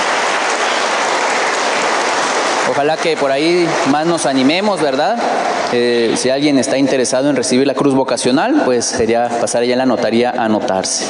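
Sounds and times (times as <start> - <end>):
applause: 0.0 - 6.3
speech: 2.7 - 11.0.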